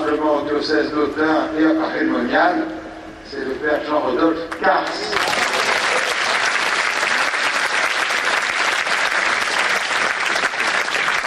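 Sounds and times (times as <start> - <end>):
speech: 0.4 - 5.4
audience applause: 4.9 - 11.2.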